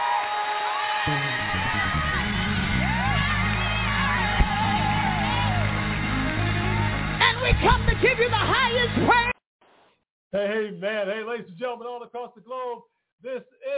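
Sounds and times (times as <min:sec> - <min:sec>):
audience cheering and shouting: 0:00.0 - 0:09.3
speech: 0:01.0 - 0:01.3, 0:10.3 - 0:13.7.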